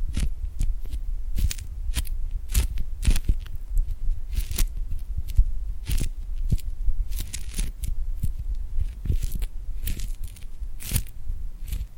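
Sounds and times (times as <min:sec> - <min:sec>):
glued hand sounds: 0:00.0 - 0:11.9.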